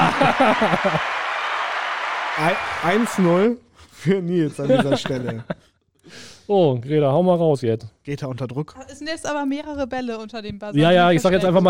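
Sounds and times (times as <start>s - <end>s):
laughter: 0.0s - 1.4s, 4.0s - 5.7s
crowd clapping: 0.0s - 3.6s
speech: 0.4s - 1.2s, 2.4s - 11.6s.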